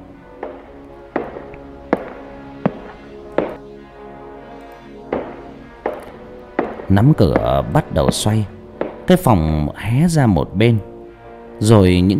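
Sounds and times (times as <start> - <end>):
hard shoe heels clacking along a corridor: 0.4 - 3.6, 5.1 - 9.3
speech: 6.9 - 10.9, 11.6 - 12.1.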